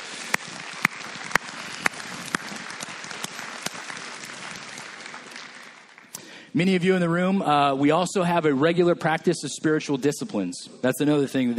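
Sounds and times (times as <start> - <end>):
audience applause: 0.0 - 6.4
speech: 6.6 - 11.5.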